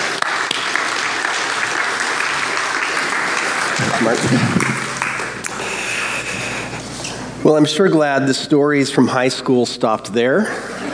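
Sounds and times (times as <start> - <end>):
audience applause: 0.0 - 6.0
speech: 4.0 - 4.8, 7.5 - 10.8.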